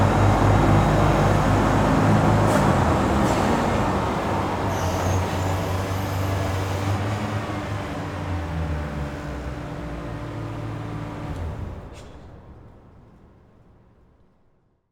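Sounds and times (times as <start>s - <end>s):
Zamboni ice resurfacing machine running on ice: 0.0s - 11.8s.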